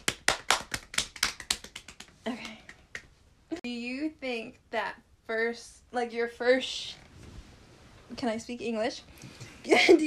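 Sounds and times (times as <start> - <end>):
hands clapping: 0.0 - 3.2
speech: 2.3 - 2.5, 4.2 - 7.0, 8.2 - 10.0.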